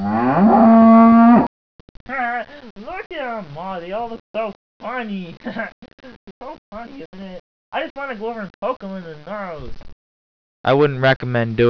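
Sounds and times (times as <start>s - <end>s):
cow mooing on a cow farm: 0.0s - 1.5s
speech: 3.1s - 6.2s, 6.8s - 9.9s, 10.6s - 11.6s.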